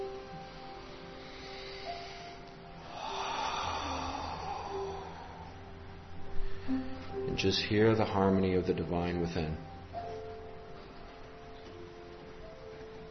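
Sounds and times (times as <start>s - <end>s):
low sustained tones: 0.0s - 13.1s
slow deep breath during a guided meditation: 0.3s - 7.2s
speech: 7.4s - 9.7s.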